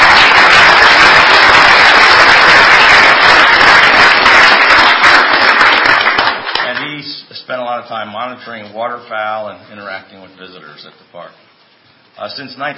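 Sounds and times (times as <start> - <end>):
audience applause: 0.0 - 6.8
speech: 8.0 - 11.4, 12.2 - 12.7.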